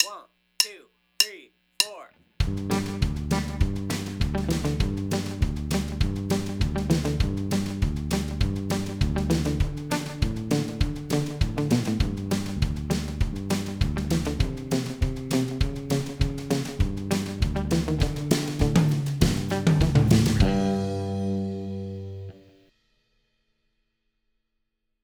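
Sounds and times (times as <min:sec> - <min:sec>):
chicken pickin bluegrass guitar: 0:02.5 - 0:22.4.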